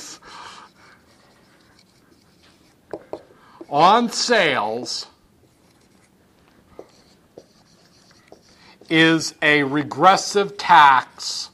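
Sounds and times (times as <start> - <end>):
pen strokes writing by hand: 0.7 - 3.9, 5.4 - 6.2, 6.8 - 9.1
speech: 3.7 - 5.1, 8.9 - 11.5.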